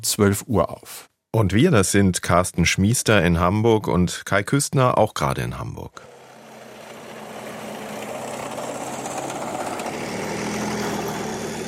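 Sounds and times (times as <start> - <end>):
speech: 0.0 - 6.2
Leopard 2 main battle tank engine: 6.0 - 11.6.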